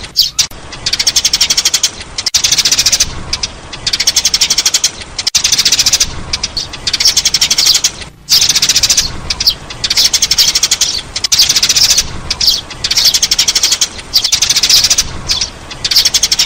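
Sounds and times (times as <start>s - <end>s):
sparrow chirping: 0.0s - 16.4s.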